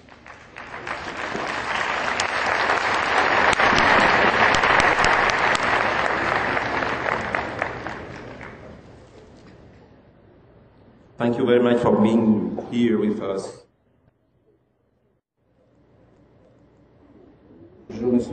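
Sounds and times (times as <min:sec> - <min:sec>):
crowd applauding: 0:00.0 - 0:08.9
speech: 0:11.2 - 0:13.6.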